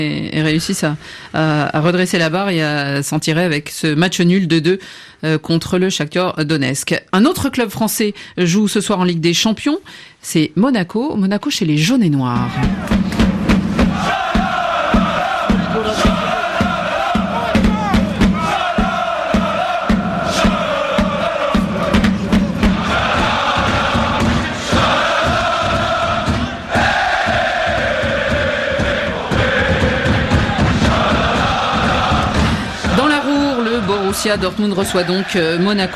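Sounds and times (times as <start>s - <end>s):
speech: 0.0s - 13.2s, 34.2s - 35.9s
football supporters singing in the stadium: 12.5s - 35.9s.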